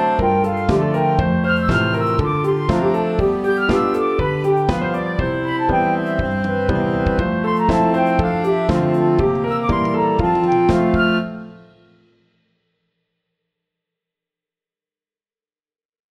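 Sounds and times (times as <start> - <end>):
disco dance music: 0.0 - 11.4.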